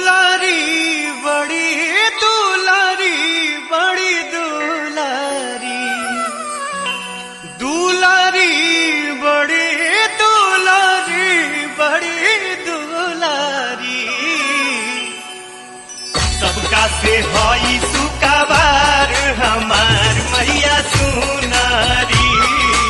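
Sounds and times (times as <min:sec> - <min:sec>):
Bhojpuri devotional ringtone: 0:00.0 - 0:22.8.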